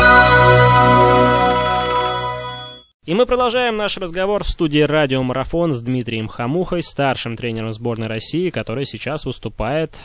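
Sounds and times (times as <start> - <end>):
telephone ringtone for a call into a radio studio: 0.0 - 2.8
speech: 3.1 - 10.0.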